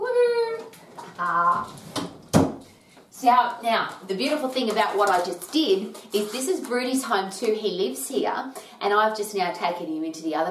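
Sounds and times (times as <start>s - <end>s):
door opening to let dog through: 0.6s - 2.7s
speech: 1.2s - 1.8s, 3.2s - 10.4s.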